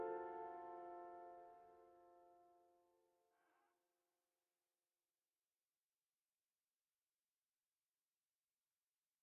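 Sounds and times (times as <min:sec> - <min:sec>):
tune: 0:00.0 - 0:01.8.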